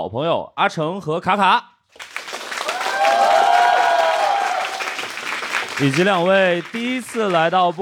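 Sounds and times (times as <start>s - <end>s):
speech: 0.0s - 2.1s, 5.8s - 7.8s
live audience applause welcoming talk show hosts: 2.0s - 7.8s.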